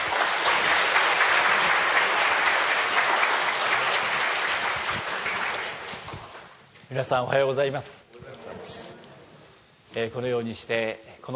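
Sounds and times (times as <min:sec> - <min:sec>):
audience applause welcoming a speaker: 0:00.0 - 0:06.6
speech: 0:06.9 - 0:08.0, 0:10.0 - 0:11.3.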